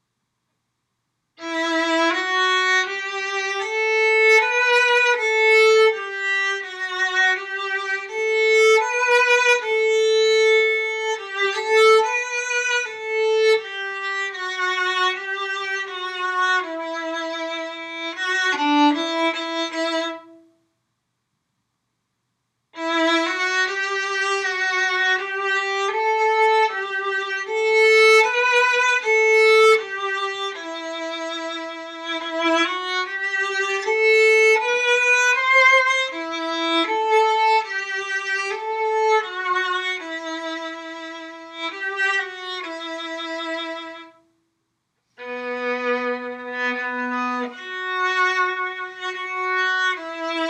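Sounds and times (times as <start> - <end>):
violin: 1.4 - 20.6, 22.8 - 44.3, 45.1 - 50.4.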